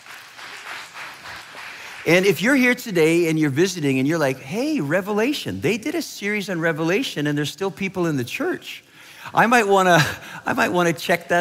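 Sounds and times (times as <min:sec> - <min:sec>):
audience applause: 0:00.0 - 0:02.3
speech: 0:02.0 - 0:11.3.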